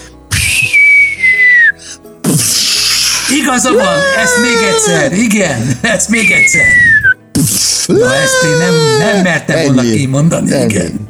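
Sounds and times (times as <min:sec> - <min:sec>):
person's voice imitating a whistling firework: 0:00.3 - 0:03.3, 0:06.2 - 0:08.2
laughter: 0:03.3 - 0:06.8, 0:07.9 - 0:09.8
speech: 0:03.3 - 0:11.0.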